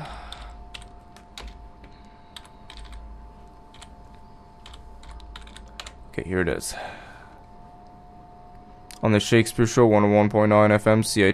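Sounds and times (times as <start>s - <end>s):
typing on a computer keyboard: 0.3s - 1.6s, 2.4s - 3.0s, 3.7s - 3.9s, 4.6s - 6.0s
speech: 6.2s - 7.0s, 9.0s - 11.3s.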